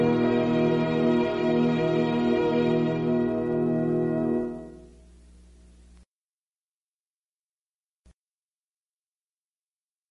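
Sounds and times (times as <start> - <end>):
instrumental music: 0.0 - 5.2.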